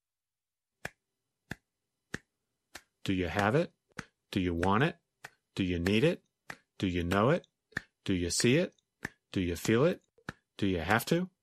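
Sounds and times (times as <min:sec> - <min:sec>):
hands clapping: 0:00.8 - 0:11.2
speech: 0:03.1 - 0:05.0, 0:05.6 - 0:10.0, 0:10.6 - 0:11.3.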